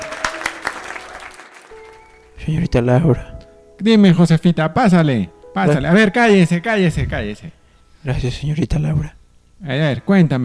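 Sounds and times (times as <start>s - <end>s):
audience applause: 0.0s - 2.3s
speech: 2.4s - 10.4s.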